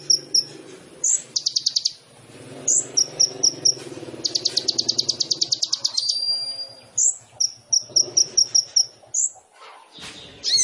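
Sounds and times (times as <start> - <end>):
sunbird song: 0.0 - 2.0, 2.6 - 10.6.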